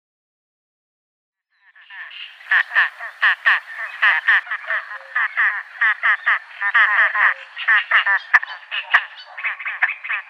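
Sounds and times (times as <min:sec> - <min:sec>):
great crested grebe giving harsh barking calls: 0:01.7 - 0:10.2.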